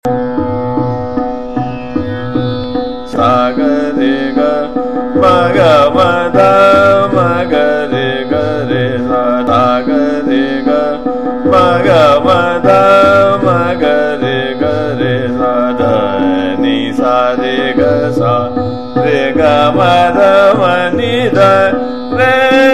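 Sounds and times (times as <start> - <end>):
person singing sargam in trital: 0.0 - 22.7.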